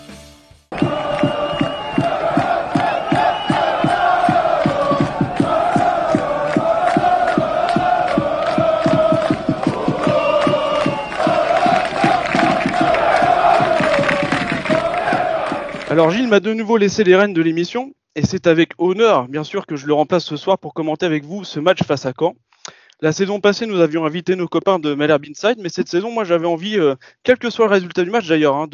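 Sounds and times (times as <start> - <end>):
radio jingle crowd chanting and cheering: 0.7 - 16.1
fast steady rhythmic claps or stamps: 0.7 - 16.3
speech: 16.0 - 28.7.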